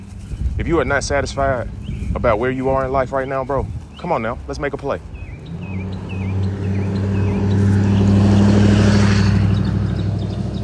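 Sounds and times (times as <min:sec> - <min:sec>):
speech: 0:00.6 - 0:05.1
truck driving past: 0:05.3 - 0:10.6.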